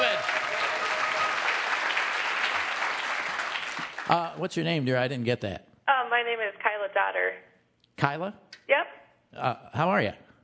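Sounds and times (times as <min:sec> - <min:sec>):
applause: 0:00.0 - 0:04.4
speech: 0:04.1 - 0:05.7, 0:06.3 - 0:10.2.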